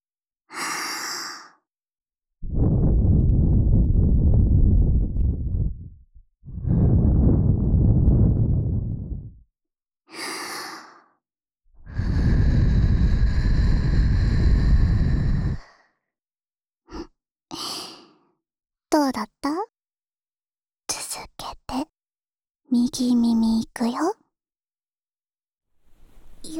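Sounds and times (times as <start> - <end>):
air blown hard into the microphone: 2.4 - 9.4, 11.9 - 15.6
speech: 23.0 - 24.2.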